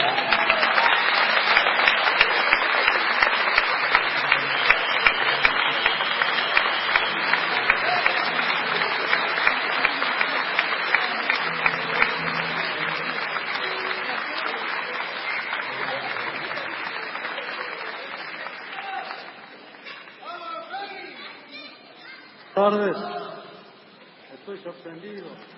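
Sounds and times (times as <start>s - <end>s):
audience applause: 0.0s - 20.9s.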